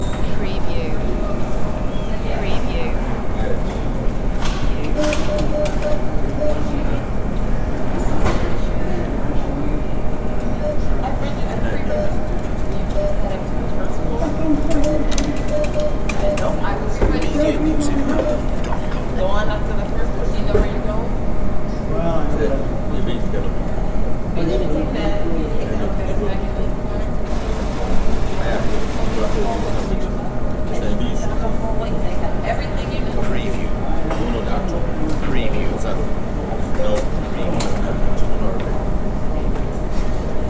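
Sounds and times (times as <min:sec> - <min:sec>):
hospital ambience: 0:00.0 - 0:40.4.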